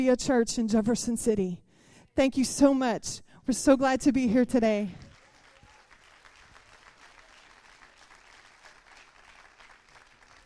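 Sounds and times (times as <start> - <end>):
speech: 0.0 - 1.6, 2.2 - 5.0
audience applause: 5.0 - 10.4.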